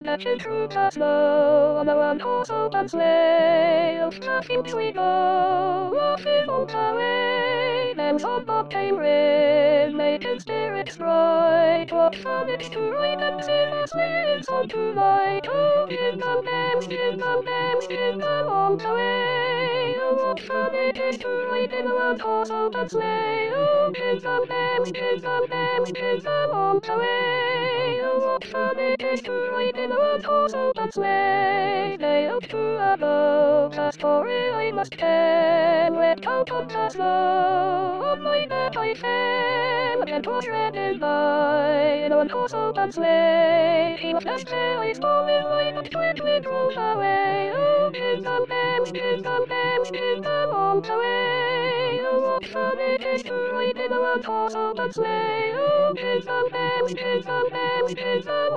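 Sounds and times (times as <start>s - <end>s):
sopranos singing: 0.0s - 58.5s.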